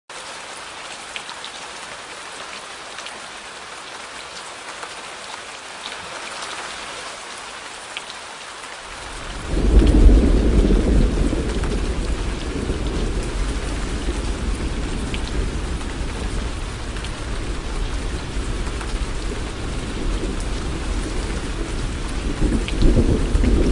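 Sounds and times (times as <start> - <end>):
rain: 0.1 - 23.7
thunder: 9.0 - 23.7.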